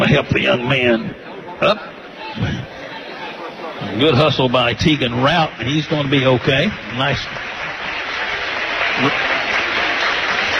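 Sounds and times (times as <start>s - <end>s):
speech: 0.1s - 2.7s, 3.8s - 7.6s, 9.0s - 9.3s
crowd applause at basketball game: 2.0s - 10.5s.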